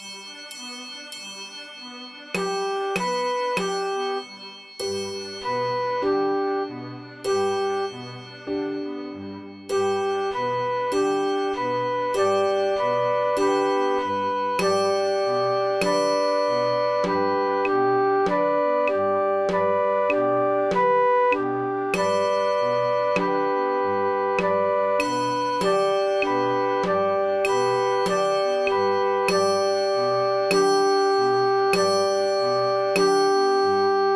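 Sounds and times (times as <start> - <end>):
recorder playing: 1.9 - 34.1.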